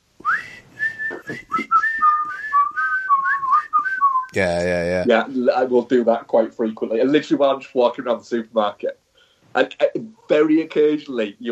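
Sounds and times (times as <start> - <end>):
person whistling a film's instrumental tune: 0.2 - 4.4
speech: 4.4 - 9.0, 9.6 - 11.5.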